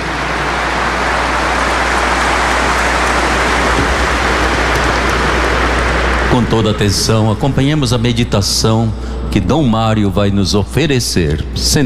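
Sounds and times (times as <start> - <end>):
audience applauding: 0.0 - 8.1
speech: 6.4 - 11.8.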